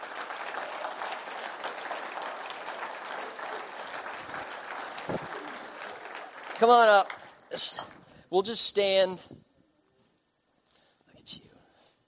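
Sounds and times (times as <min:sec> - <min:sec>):
audience applause: 0:00.0 - 0:07.7
speech: 0:06.6 - 0:09.4.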